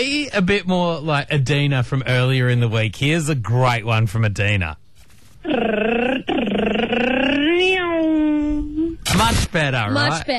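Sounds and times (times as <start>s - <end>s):
speech: 0.0s - 4.8s, 5.4s - 8.3s, 9.2s - 10.3s
voice imitating car engine revving: 5.5s - 7.8s.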